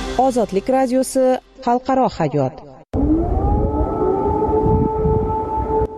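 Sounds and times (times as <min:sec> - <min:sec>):
speech: 0:00.2 - 0:02.6
air raid siren wailing over Kyiv: 0:02.9 - 0:05.9.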